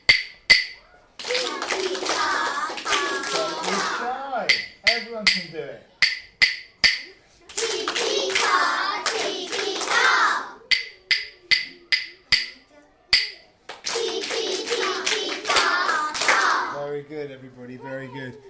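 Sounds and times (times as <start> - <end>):
echoing clapping rhythms: 0.1 - 12.6, 13.2 - 16.8.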